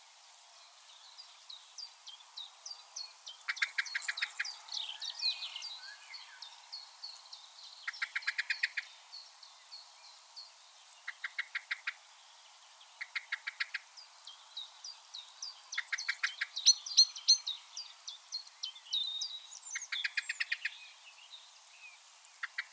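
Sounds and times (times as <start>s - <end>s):
other small birds twittering and whistling: 0.9s - 22.7s
common blackbird chinking clicks: 3.4s - 4.6s, 7.9s - 8.9s, 11.0s - 12.0s, 13.0s - 13.9s, 15.7s - 17.5s, 19.7s - 20.7s, 22.4s - 22.7s.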